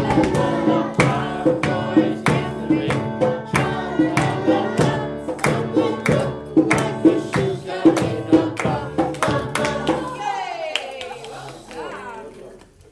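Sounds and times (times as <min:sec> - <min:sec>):
reggae songs: 0:00.0 - 0:10.1.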